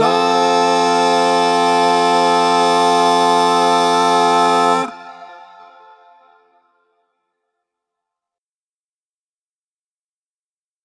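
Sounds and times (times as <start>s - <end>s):
Christmas carol backing track without lead: 0.0s - 5.5s.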